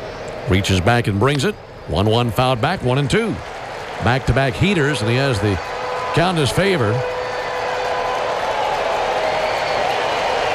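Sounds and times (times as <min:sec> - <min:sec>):
speech: 0:00.5 - 0:07.1
sellout stadium crowd cheering and clapping: 0:02.2 - 0:10.5.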